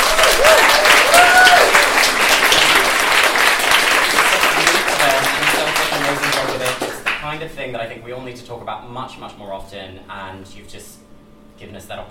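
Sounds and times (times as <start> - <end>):
audience applause at a live event: 0.0 - 7.2
speech: 7.8 - 12.0.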